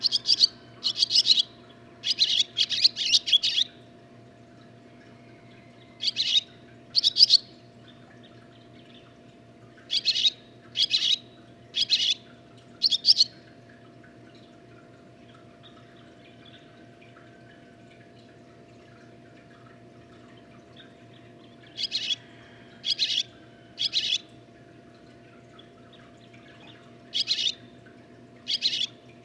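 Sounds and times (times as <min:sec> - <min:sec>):
barn swallow chirping: 0:00.0 - 0:03.8, 0:06.0 - 0:07.5, 0:09.9 - 0:11.2, 0:11.8 - 0:12.2, 0:12.8 - 0:13.4, 0:21.7 - 0:22.2, 0:22.8 - 0:24.3, 0:26.5 - 0:27.6, 0:28.5 - 0:29.0.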